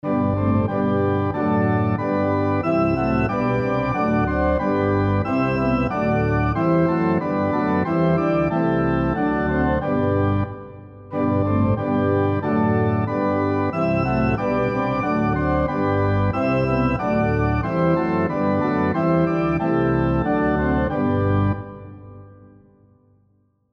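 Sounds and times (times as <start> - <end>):
SATB four-part harmony on piano: 0.0 - 22.7.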